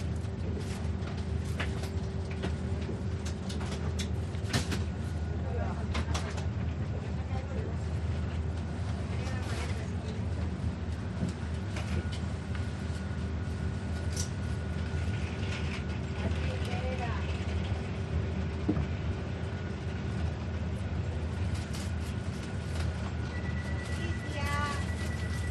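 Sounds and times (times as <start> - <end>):
Renfe train in Spain riding slowly: 0.0 - 25.5
train public address announcement: 5.3 - 11.0, 16.2 - 17.5, 23.2 - 25.5.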